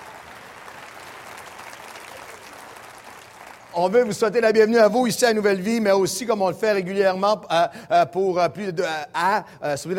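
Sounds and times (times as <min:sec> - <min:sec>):
audience applause: 0:00.0 - 0:04.2
speech: 0:03.7 - 0:09.9.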